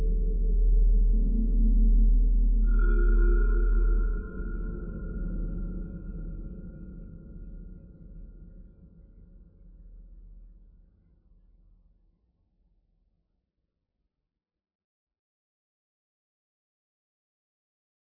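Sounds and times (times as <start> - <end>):
drone: 0.0 - 7.4.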